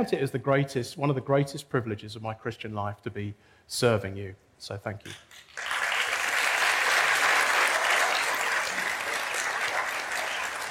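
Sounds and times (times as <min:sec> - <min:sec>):
speech: 0:00.0 - 0:05.7
audience clapping: 0:05.2 - 0:10.6.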